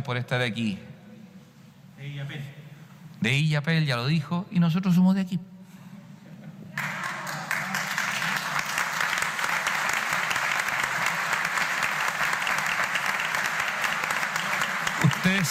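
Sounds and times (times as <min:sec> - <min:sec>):
speech: 0:00.0 - 0:00.9, 0:02.0 - 0:02.6, 0:03.2 - 0:05.5, 0:15.3 - 0:15.4
audience applause: 0:06.8 - 0:15.4.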